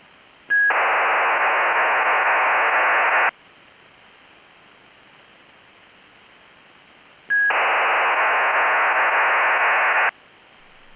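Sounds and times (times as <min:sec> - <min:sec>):
2400 baud TADIL data link signal: 0:00.5 - 0:03.3, 0:07.3 - 0:10.1.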